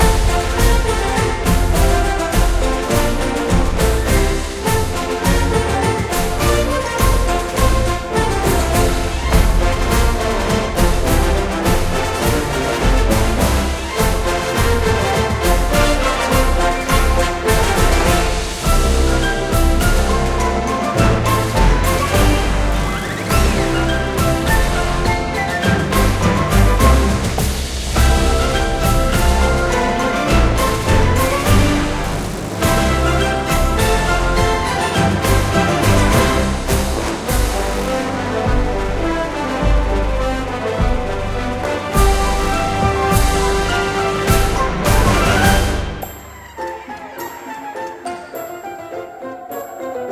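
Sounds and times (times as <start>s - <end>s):
playful music loop: 0.0s - 50.1s.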